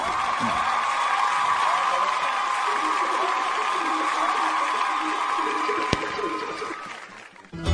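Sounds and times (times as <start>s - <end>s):
audience applause: 0.0s - 7.6s.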